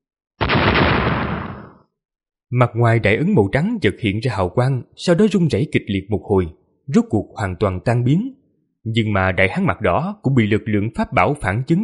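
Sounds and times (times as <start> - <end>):
loud booming blast: 0.4 - 1.9
speech: 2.5 - 11.8.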